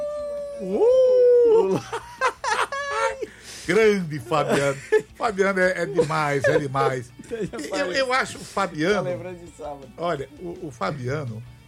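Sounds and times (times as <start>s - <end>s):
wolf howl sound effect: 0.0s - 1.8s
speech: 0.6s - 1.0s, 1.7s - 2.1s, 3.7s - 11.5s
laughter: 1.4s - 9.3s.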